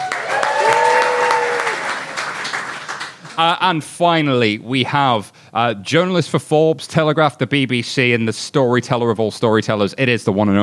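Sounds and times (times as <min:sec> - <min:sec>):
whoop or whistle: 0:00.0 - 0:02.0
audience applause: 0:00.0 - 0:03.5
speech: 0:03.4 - 0:10.6.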